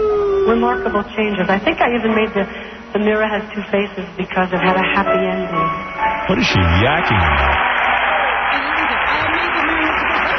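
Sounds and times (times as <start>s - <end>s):
speech: 0.5s - 7.7s
audience applause for the film The Mirror Has Two Faces: 6.4s - 10.3s.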